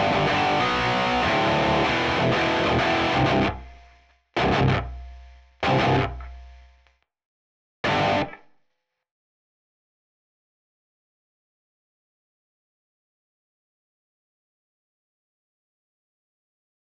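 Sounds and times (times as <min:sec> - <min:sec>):
backing guitar: 0:00.0 - 0:06.8, 0:07.8 - 0:08.4.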